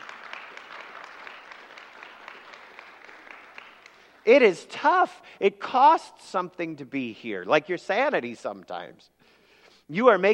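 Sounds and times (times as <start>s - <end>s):
crowd applauding: 0.0s - 4.6s
speech: 4.2s - 9.2s, 9.9s - 10.3s.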